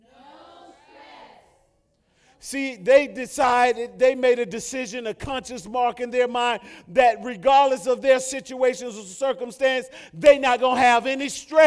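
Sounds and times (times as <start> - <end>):
crowd shouting a phrase in unison: 0.0 - 1.6
speech: 2.4 - 11.6.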